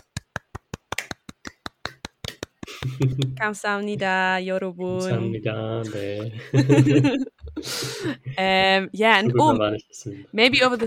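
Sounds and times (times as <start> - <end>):
small round of applause: 0.0 - 3.4
laughter: 2.6 - 3.4, 5.0 - 8.6, 9.2 - 9.6
speech: 2.8 - 10.8.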